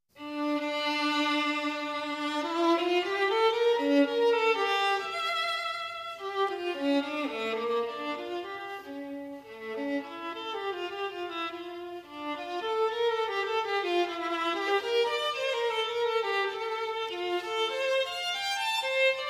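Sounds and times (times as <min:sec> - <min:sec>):
violin: 0:00.1 - 0:19.2.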